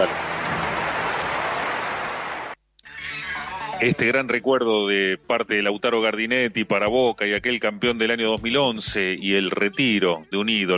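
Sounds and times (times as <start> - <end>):
crowd applause: 0.0 - 2.6
speech: 3.8 - 10.7.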